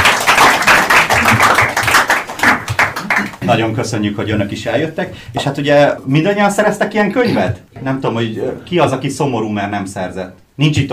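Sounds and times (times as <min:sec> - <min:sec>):
audience applause: 0:00.0 - 0:03.4
speech: 0:03.5 - 0:10.9.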